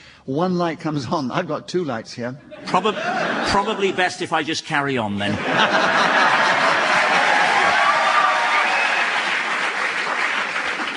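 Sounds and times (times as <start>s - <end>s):
speech: 0.2s - 6.4s
laughter: 2.5s - 4.3s, 5.2s - 7.9s
audience applause: 5.4s - 10.9s.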